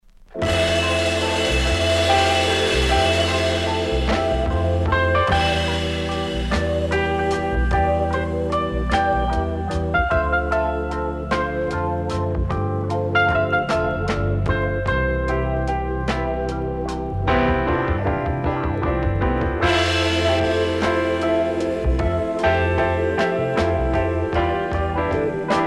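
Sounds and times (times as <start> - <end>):
instrumental music: 0.1 - 25.6.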